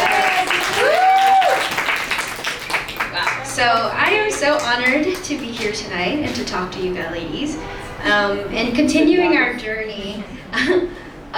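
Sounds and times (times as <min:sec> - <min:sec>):
audience applause: 0:00.0 - 0:05.8
speech: 0:03.6 - 0:11.3.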